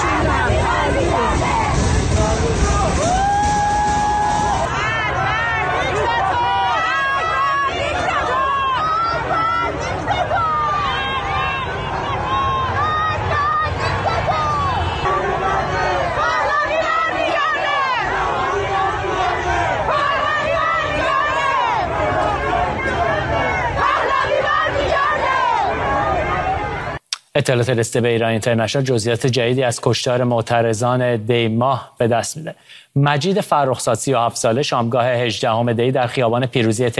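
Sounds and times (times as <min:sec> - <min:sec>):
protesters chanting slogans at a rally in Tajrish Square, Tehran: 0:00.0 - 0:27.0
overlapping shouts and crowd babble: 0:00.0 - 0:27.1
speech: 0:27.4 - 0:36.9.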